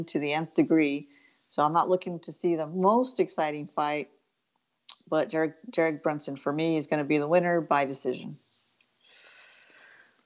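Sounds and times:
speech: 0.0s - 4.2s, 5.1s - 8.4s
deep audible breath drawn in before speaking: 9.0s - 10.2s.

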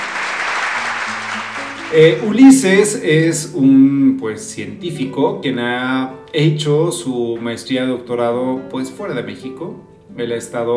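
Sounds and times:
audience applause greeting a scientist guest: 0.0s - 2.2s
speech: 1.9s - 10.7s.

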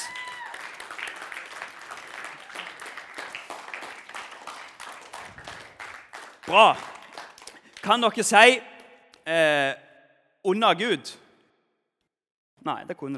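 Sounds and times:
audience applause: 0.0s - 8.6s
speech: 6.5s - 6.9s, 7.8s - 8.7s, 9.3s - 9.8s, 10.4s - 11.2s, 12.6s - 13.1s.

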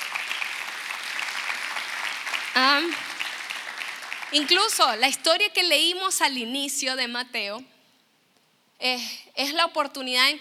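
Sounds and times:
audience applause: 0.0s - 5.0s
speech: 2.6s - 3.1s, 4.3s - 7.7s, 8.8s - 10.3s.

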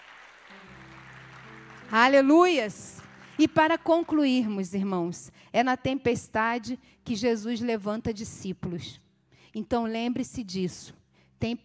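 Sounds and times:
audience applauding: 0.0s - 4.4s
speech: 1.9s - 11.6s.

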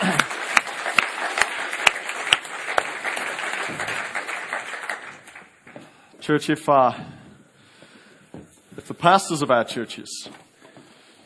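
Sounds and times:
audience applause: 0.0s - 5.8s
speech: 6.3s - 7.2s, 8.9s - 10.4s.

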